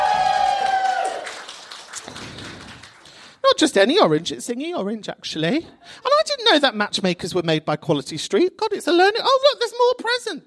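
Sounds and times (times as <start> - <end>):
scattered handclaps: 0.4 - 3.2
speech: 3.6 - 10.4.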